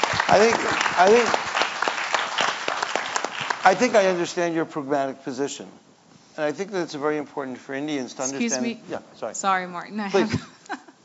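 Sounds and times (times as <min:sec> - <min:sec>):
audience applause: 0:00.0 - 0:04.2
speech: 0:00.3 - 0:01.4, 0:03.6 - 0:05.8, 0:06.4 - 0:10.5.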